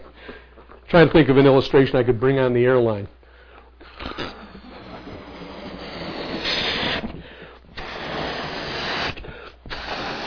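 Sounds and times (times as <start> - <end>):
speech: 0.9 - 3.2
balloon being blown up: 4.0 - 10.2.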